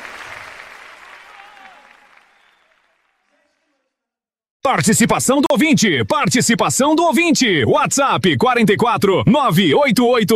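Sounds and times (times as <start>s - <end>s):
audience applause: 0.0s - 3.8s
speech: 4.7s - 10.3s.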